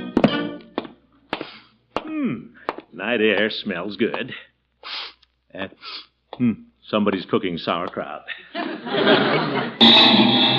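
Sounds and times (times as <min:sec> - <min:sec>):
footsteps going down front steps: 0:00.0 - 0:04.4, 0:05.2 - 0:08.1
speech: 0:02.3 - 0:04.5, 0:05.5 - 0:10.5
laughter: 0:08.3 - 0:09.8.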